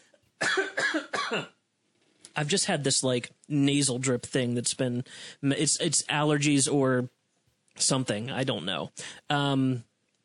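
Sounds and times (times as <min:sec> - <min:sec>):
harsh coughing: 0:00.4 - 0:01.6
speech: 0:01.3 - 0:01.6, 0:02.4 - 0:07.2, 0:07.8 - 0:09.9.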